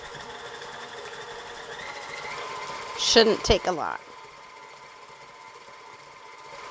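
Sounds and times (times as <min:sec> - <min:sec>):
electric mixer beating cookie dough: 0:00.0 - 0:06.6
speech: 0:03.0 - 0:04.1.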